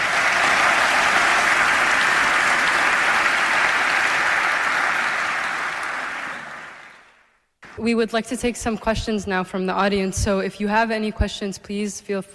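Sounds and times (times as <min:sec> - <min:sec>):
audience applause: 0:00.0 - 0:07.3
speech: 0:07.8 - 0:12.3.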